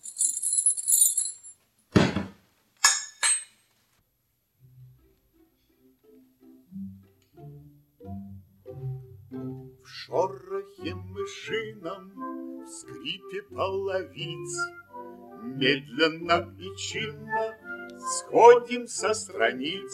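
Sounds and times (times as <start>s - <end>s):
keys jingling as handed over: 0.0s - 1.6s
soft low musical notes: 4.6s - 19.9s
speech: 13.3s - 19.9s.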